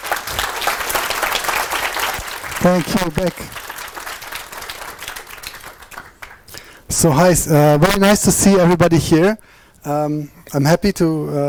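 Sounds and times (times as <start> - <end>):
audience applause: 0.0 - 7.2
speech: 2.6 - 3.6, 7.0 - 11.4.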